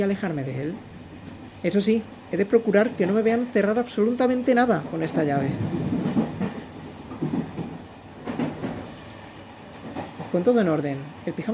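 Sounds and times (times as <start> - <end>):
speech: 0.0 - 0.9, 1.6 - 5.8, 10.3 - 11.5
train wheels rumbling on rails: 0.0 - 11.5
train wheels clickety-clack on rails: 4.9 - 9.0, 9.8 - 10.6.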